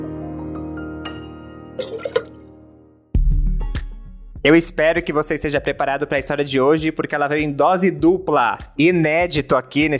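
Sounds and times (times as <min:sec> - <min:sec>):
water dripping and splashing while washing dishes: 0:01.8 - 0:02.4
speech: 0:04.4 - 0:09.9.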